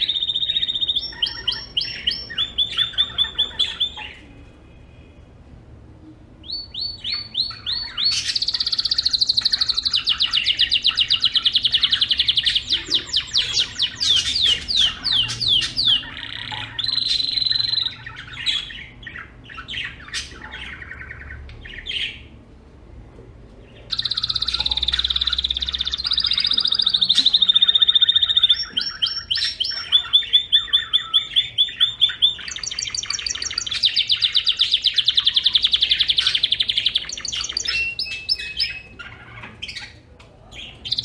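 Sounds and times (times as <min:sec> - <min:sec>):
canary: 0:00.0 - 0:05.3, 0:06.4 - 0:22.4, 0:23.6 - 0:41.0.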